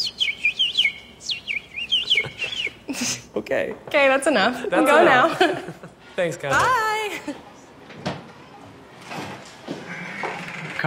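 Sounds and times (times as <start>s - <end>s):
person imitating bird chirps: 0.0s - 3.2s
laughter: 2.0s - 3.2s, 4.6s - 6.0s
speech: 3.4s - 7.4s.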